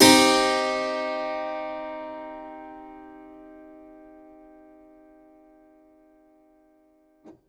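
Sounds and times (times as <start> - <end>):
harpsichord in minor key: 0.0 - 4.0
piano in minor key: 0.0 - 7.0.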